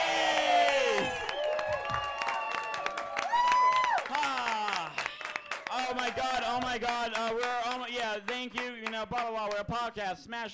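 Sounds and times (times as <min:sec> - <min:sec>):
audience cheering and whooping: 0:00.0 - 0:05.7
audience applause: 0:00.0 - 0:07.8
speech: 0:06.3 - 0:10.5.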